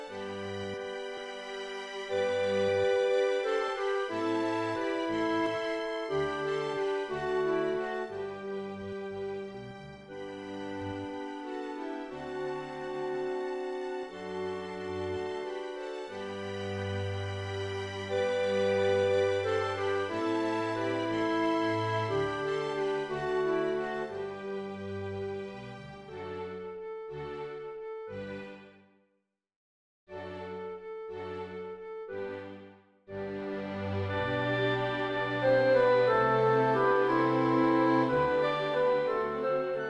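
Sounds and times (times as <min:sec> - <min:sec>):
accompaniment: 0:00.0 - 0:24.9, 0:33.2 - 0:39.8.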